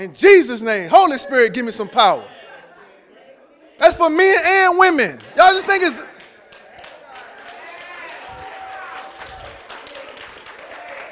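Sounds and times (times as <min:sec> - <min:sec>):
speech: 0:00.0 - 0:02.4, 0:03.8 - 0:06.1
laughter: 0:01.4 - 0:03.5
women in audience clapping: 0:05.1 - 0:11.1.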